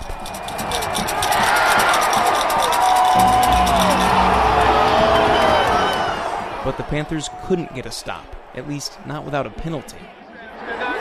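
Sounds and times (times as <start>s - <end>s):
fans banging seats rhythmically and rattling: 0.0s - 6.6s
stadium fans roaring and cheering: 0.0s - 10.9s
speech: 6.8s - 10.7s.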